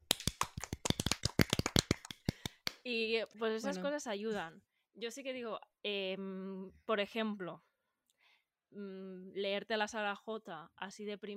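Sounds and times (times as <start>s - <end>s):
applause, hands clapping: 0.0s - 2.8s
speech: 2.9s - 7.7s, 8.7s - 11.3s.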